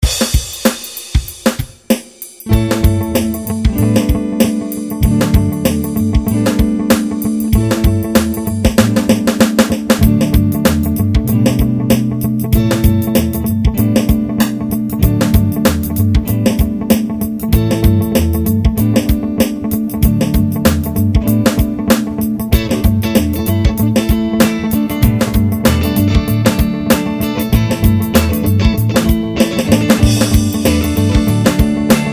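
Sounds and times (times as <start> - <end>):
funk music: 0.0 - 32.1.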